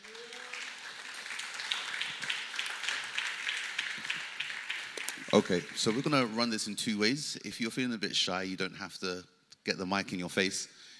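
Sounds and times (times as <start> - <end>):
audience applauding: 0.0 - 6.8
speech: 5.3 - 10.8.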